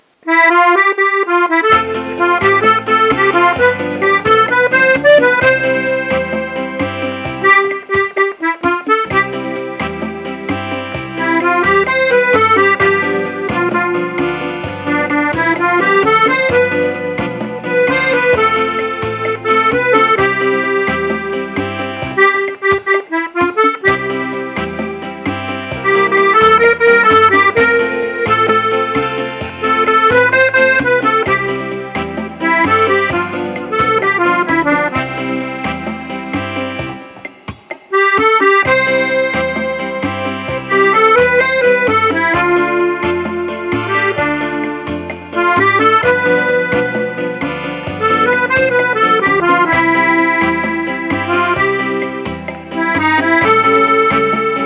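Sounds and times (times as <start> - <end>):
bachata music: 0.0 - 54.6.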